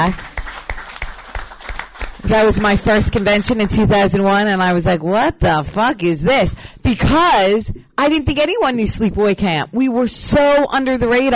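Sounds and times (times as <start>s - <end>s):
speech: 0.0s - 0.3s, 2.2s - 11.3s
hands clapping: 0.0s - 3.9s.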